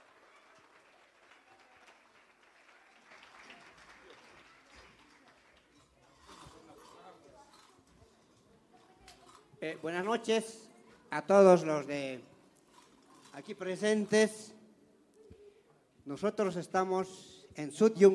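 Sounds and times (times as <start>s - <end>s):
crowd cheering: 0.0s - 5.7s
audience applause: 0.0s - 6.5s
speech: 9.6s - 12.3s, 13.4s - 14.5s, 16.1s - 18.1s.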